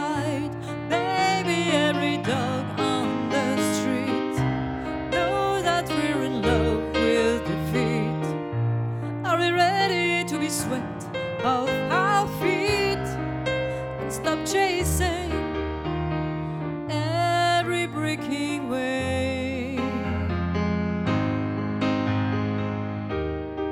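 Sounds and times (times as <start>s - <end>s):
voice: 0.0s - 4.4s, 5.1s - 8.3s, 9.3s - 13.2s, 14.1s - 15.4s, 16.9s - 20.4s
piano duet: 0.0s - 23.7s.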